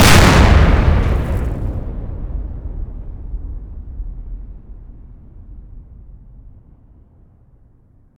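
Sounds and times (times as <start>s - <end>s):
explosion: 0.0s - 5.2s.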